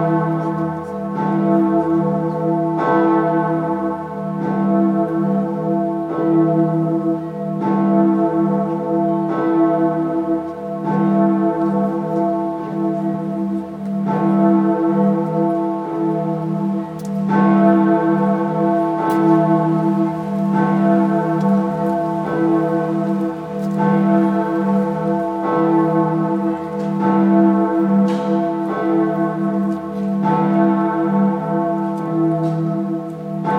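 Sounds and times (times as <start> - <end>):
cathedral bell ringing: 0.0 - 33.5.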